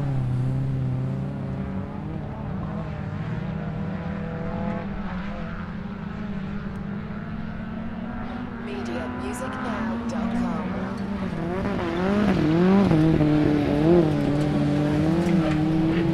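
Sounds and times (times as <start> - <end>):
light aircraft: 0.0 - 16.1
race cars passing at a race event: 0.0 - 16.1
people chattering at a race event: 8.6 - 11.0.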